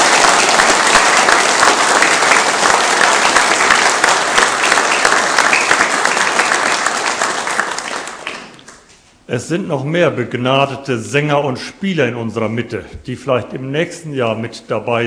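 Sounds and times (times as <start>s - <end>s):
audience applause: 0.0s - 8.8s
speech: 9.3s - 15.0s.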